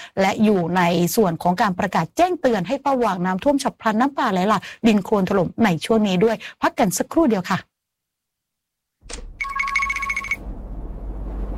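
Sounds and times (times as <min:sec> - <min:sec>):
speech: 0:00.2 - 0:07.7, 0:09.1 - 0:09.3
telephone ringing: 0:09.4 - 0:10.4.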